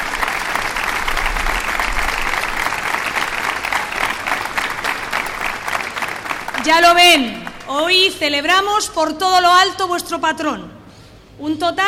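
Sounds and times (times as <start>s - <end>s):
welcoming applause from a large crowd: 0.0s - 8.5s
speech: 6.6s - 10.8s, 11.4s - 11.8s.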